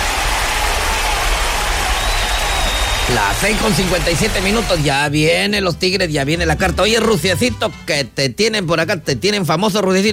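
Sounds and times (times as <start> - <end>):
crowd applause: 0.0 - 4.9
speech: 3.1 - 10.1.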